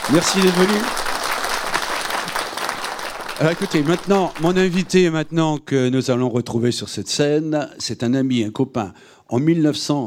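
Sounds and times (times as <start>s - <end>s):
crowd applauding: 0.0s - 5.4s
speech: 0.1s - 1.1s, 3.4s - 10.0s.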